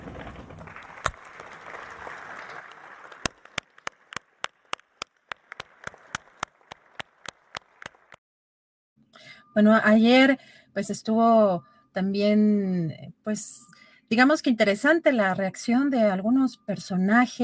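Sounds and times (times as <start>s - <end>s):
legislators applauding in a chamber: 0.0s - 8.2s
speech: 9.6s - 17.4s.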